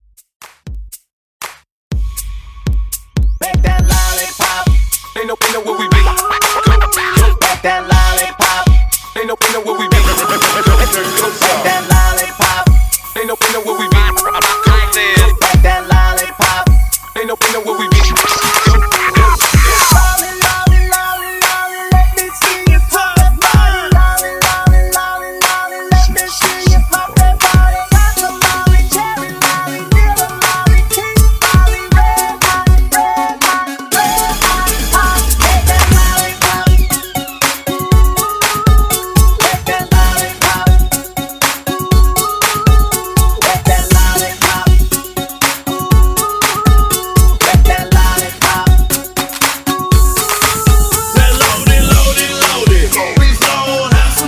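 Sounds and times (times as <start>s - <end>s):
throwback party breakbeat: 1.9s - 54.2s
record scratching: 6.0s - 7.6s, 18.0s - 20.1s, 34.0s - 37.3s, 50.1s - 54.2s.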